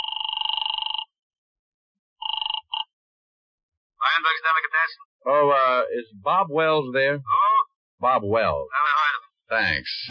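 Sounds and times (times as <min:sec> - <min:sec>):
telephone ringing over the line: 0:00.0 - 0:01.1
speech: 0:04.2 - 0:07.4, 0:08.0 - 0:10.0.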